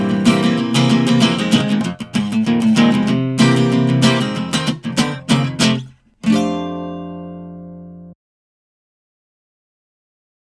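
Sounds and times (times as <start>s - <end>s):
drunken guitar playing: 0.0s - 8.2s.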